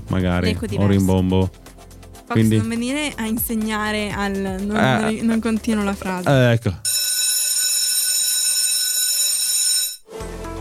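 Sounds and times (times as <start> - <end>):
speech: 0.1 - 1.6, 2.3 - 7.0
fire brigade alarm bell ringing: 6.9 - 10.1.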